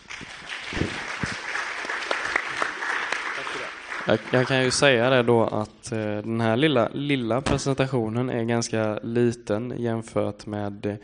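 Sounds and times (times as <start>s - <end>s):
audience applause: 0.0s - 5.1s
speech: 4.1s - 11.0s.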